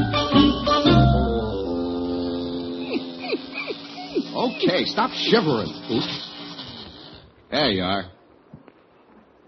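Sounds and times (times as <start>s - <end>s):
electric razor buzzing: 0.1s - 7.3s
speech: 4.8s - 6.3s, 7.6s - 8.2s.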